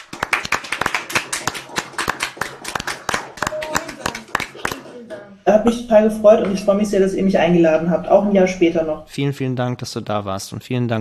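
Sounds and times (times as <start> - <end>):
participants clapping over separate microphones: 0.0 - 5.0
speech: 5.5 - 10.9.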